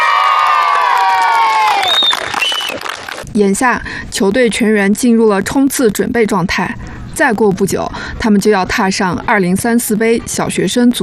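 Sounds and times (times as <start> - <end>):
children shouting on the football field of the central primary school in Qaqun township: 0.0 - 2.0
speech: 3.4 - 11.0.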